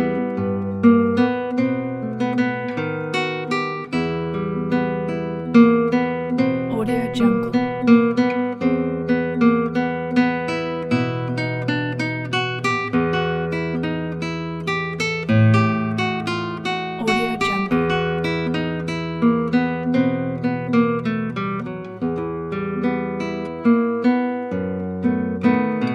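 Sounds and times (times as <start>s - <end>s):
classical guitar playing a Russian romance: 0.0s - 25.9s.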